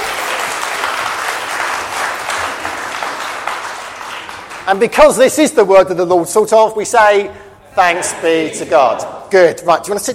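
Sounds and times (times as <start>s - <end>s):
crowd applause: 0.0s - 4.8s
speech: 4.7s - 10.1s.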